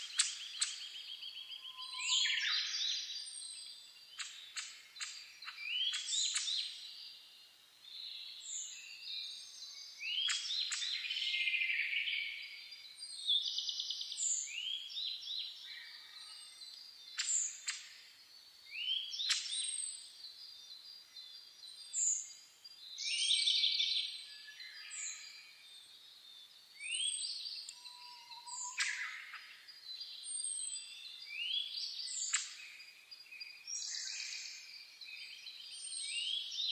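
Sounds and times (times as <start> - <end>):
birds singing at dawn: 0.0 - 36.7.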